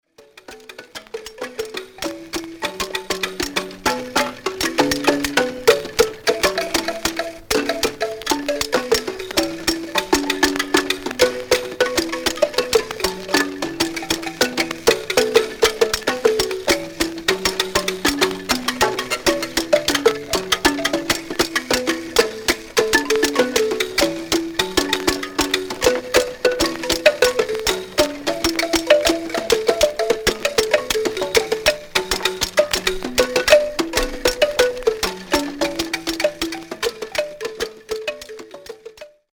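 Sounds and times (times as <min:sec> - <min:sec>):
Central African music: 0:00.0 - 0:39.3.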